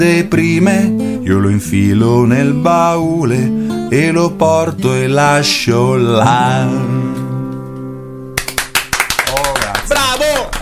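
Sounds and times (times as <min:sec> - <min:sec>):
speech: 0:00.0 - 0:07.0
audience applause: 0:08.4 - 0:10.6.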